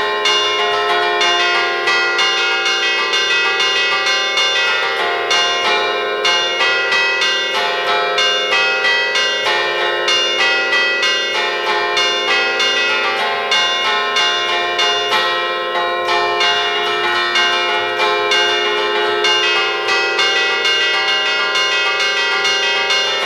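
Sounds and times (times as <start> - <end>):
five church bells ringing a mazurka in Grumello de' Zanchi: 0.0 - 23.2.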